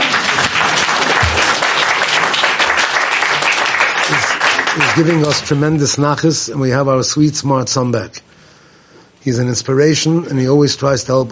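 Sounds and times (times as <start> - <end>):
audience applause: 0.0 - 5.7
speech: 5.0 - 8.2, 9.2 - 11.3.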